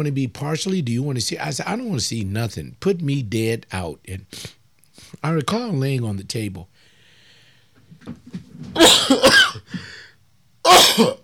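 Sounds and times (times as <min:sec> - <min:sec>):
speech: 0:00.0 - 0:06.7, 0:08.0 - 0:10.0, 0:10.7 - 0:11.2
person sneezing: 0:08.8 - 0:10.0, 0:10.7 - 0:11.2.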